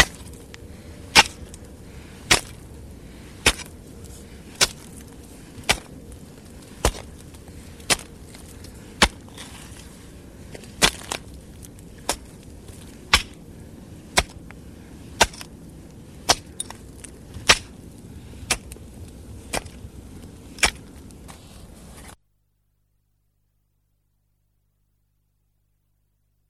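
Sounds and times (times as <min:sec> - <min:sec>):
hoe striking soil: 0:00.0 - 0:13.4, 0:14.0 - 0:17.8, 0:18.4 - 0:18.8, 0:19.4 - 0:22.2.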